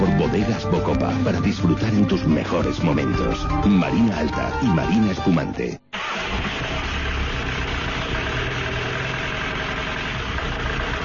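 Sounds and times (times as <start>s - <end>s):
speech: 0.3s - 5.9s
car making a strange noise: 6.0s - 11.0s.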